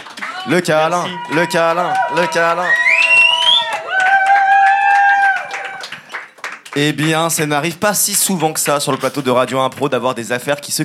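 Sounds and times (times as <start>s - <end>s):
audience clapping: 0.0s - 9.2s
sustained vocal cheer or cooing: 0.2s - 6.1s
speech: 0.4s - 2.8s, 6.8s - 10.8s.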